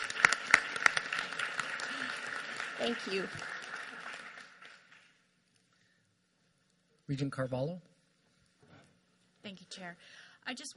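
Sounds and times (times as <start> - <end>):
room of people applauding: 0.0 - 5.3
speech: 2.8 - 3.6, 7.1 - 7.9, 9.8 - 10.7.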